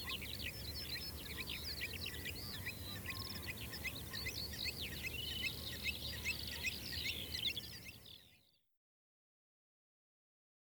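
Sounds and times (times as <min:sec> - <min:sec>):
birds chirping and twittering: 0:00.0 - 0:08.5.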